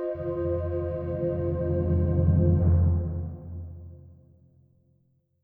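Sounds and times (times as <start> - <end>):
music intro: 0.1 - 4.2.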